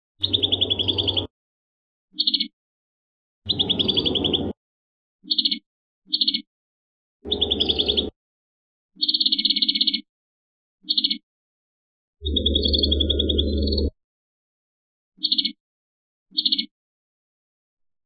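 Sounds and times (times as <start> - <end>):
prinia singing trills: 0.2 - 1.3, 2.1 - 2.6, 3.5 - 4.6, 5.2 - 6.5, 7.2 - 8.1, 9.0 - 10.1, 10.8 - 11.2, 12.2 - 14.0, 15.2 - 15.6, 16.3 - 16.7.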